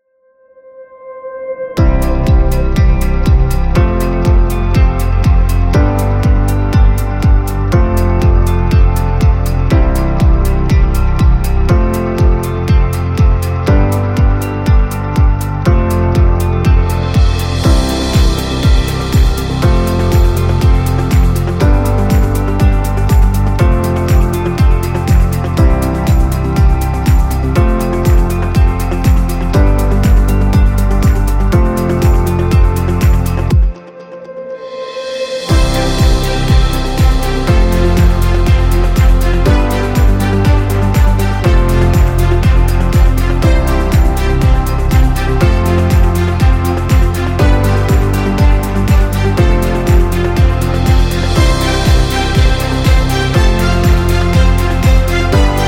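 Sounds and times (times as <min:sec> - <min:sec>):
positive inspirational corporate music: 0:01.7 - 0:55.6.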